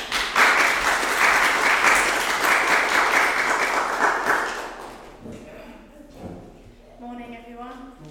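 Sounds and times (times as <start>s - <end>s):
crowd applauding: 0.0s - 5.2s.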